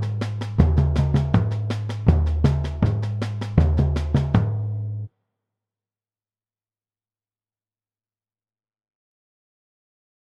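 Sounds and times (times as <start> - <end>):
surdo drums playing samba variations: 0.0 - 4.8.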